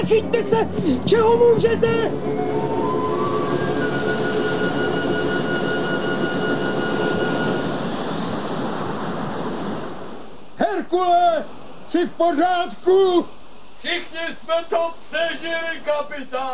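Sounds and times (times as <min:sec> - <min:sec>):
speech: 0:00.0 - 0:02.5, 0:10.6 - 0:16.5
large ocean wave crashing over ship: 0:00.0 - 0:15.9.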